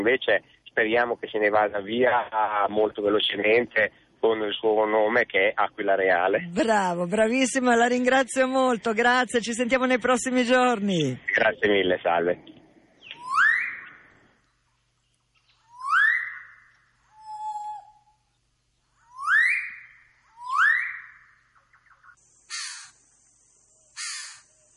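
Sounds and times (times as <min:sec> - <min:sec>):
speech: 0:00.0 - 0:12.6
bird-of-paradise call: 0:13.0 - 0:14.1, 0:15.4 - 0:18.3, 0:19.0 - 0:23.0, 0:23.8 - 0:24.7.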